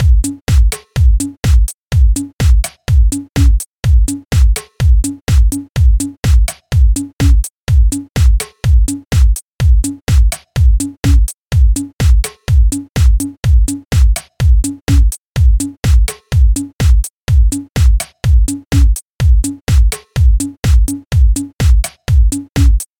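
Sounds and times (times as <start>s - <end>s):
house beat at 125 BPM: 0.0s - 22.9s.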